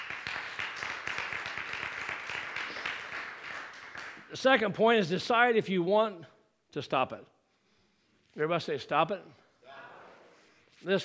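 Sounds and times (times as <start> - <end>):
crowd clapping: 0.0 - 4.3
speech: 4.3 - 7.3, 8.4 - 9.4, 10.8 - 11.0.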